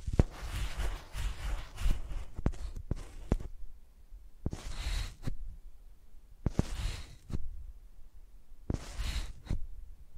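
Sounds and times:
microphones used like pencils, scratching and tapping: 0:00.0 - 0:03.5, 0:06.5 - 0:07.4, 0:08.7 - 0:09.6.

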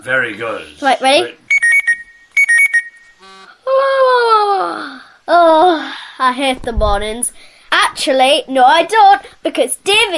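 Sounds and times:
speech: 0:00.0 - 0:01.4, 0:05.3 - 0:10.1
buzzy tone: 0:00.7 - 0:03.6
alarm clock beeping: 0:01.5 - 0:03.5
person yawning: 0:03.6 - 0:06.1.

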